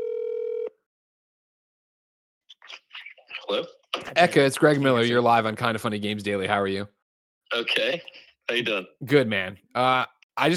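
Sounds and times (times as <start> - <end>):
telephone ringing: 0.0 - 0.8
speech: 2.6 - 10.5.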